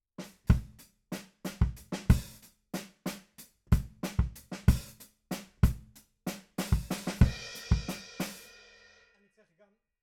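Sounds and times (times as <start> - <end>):
bass drum: 0.5 - 0.8, 1.5 - 2.4, 3.8 - 5.9, 6.6 - 8.0.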